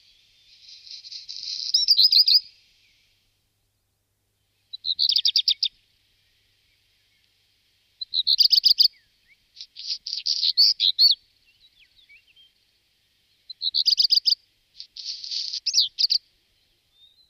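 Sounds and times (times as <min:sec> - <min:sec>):
Phoenicurus ochruros black redstart calling: 0:00.0 - 0:03.1, 0:04.4 - 0:07.3, 0:08.0 - 0:12.6, 0:13.3 - 0:17.2.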